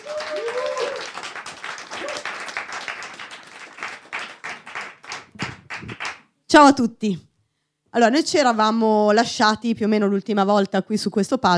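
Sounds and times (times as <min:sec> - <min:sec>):
whoops and cheers: 0:00.0 - 0:01.2, 0:01.9 - 0:02.5
audience applause: 0:00.0 - 0:06.2
speech: 0:06.5 - 0:07.3, 0:07.9 - 0:11.5.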